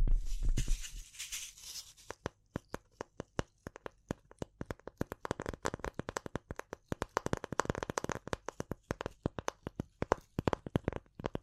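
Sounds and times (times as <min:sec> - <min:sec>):
short hiss of scratching: 0:00.2 - 0:02.2
tapping: 0:02.0 - 0:11.4.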